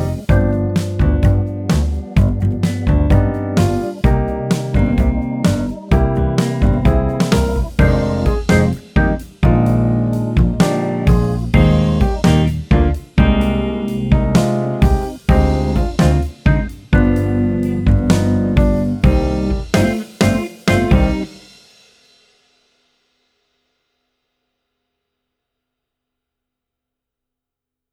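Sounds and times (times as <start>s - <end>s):
jazz tango backing track: 0.0s - 21.3s.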